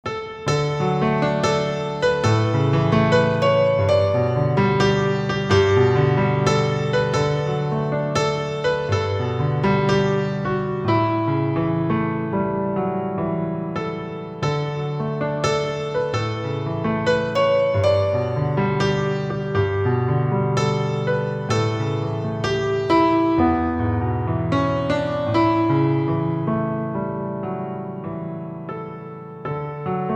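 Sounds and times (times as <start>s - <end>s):
piano: 0.0s - 30.1s.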